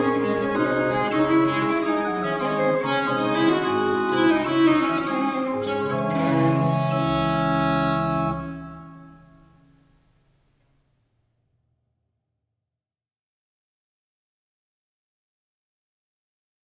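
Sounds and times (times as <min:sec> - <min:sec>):
solo viola da gamba playing a gigue in D minor: 0:00.0 - 0:09.5.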